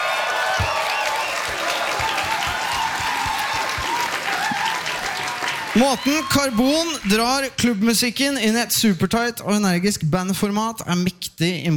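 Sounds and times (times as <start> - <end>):
faint cheers and whistles: 0.0 - 6.9
audience applause: 0.0 - 7.0
speech: 5.8 - 11.7.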